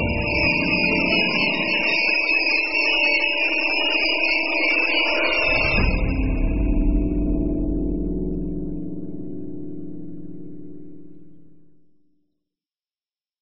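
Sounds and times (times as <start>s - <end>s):
orchestral thriller score: 0.0s - 9.7s.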